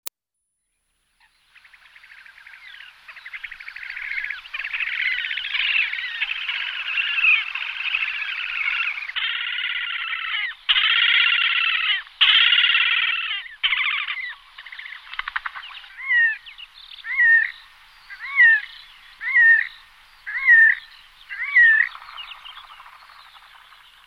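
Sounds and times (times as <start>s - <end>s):
horned grebe Podiceps auritus trilling: 1.6s - 23.7s.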